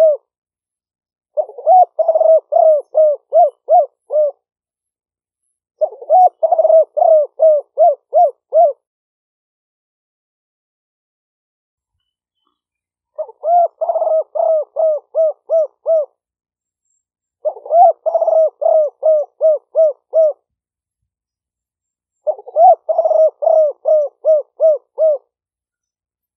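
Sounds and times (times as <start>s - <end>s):
spotted dove cooing: 0.0s - 0.3s, 1.4s - 4.4s, 5.8s - 8.8s, 13.1s - 16.2s, 17.4s - 20.5s, 22.2s - 25.3s.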